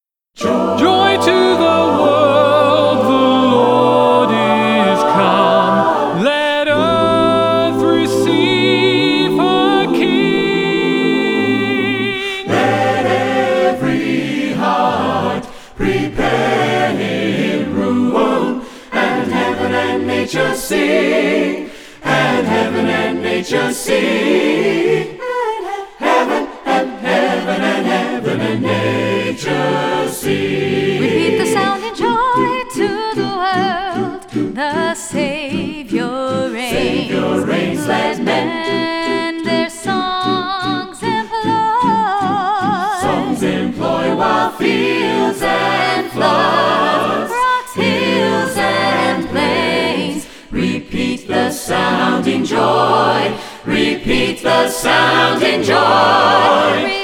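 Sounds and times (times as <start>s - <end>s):
a cappella Christmas carol singing: 0.4s - 57.0s.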